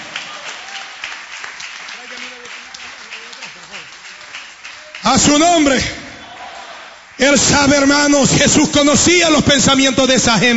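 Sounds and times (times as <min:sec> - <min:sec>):
audience clapping: 0:00.0 - 0:07.9
speech: 0:05.1 - 0:06.0, 0:07.2 - 0:10.5.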